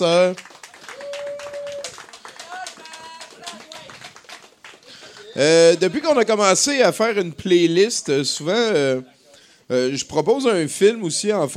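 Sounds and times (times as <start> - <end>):
speech: 0.0 - 0.5, 5.4 - 9.1, 9.7 - 11.5
audience applause: 0.0 - 6.0.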